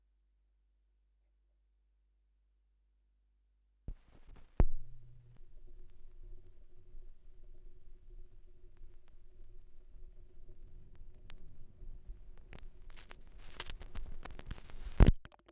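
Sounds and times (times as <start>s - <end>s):
vinyl record noise: 3.9s - 15.3s.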